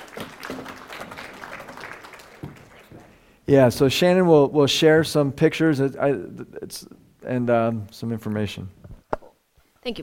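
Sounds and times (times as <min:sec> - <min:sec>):
room full of people clapping: 0:00.0 - 0:03.4
speech: 0:03.5 - 0:08.8, 0:09.8 - 0:10.0.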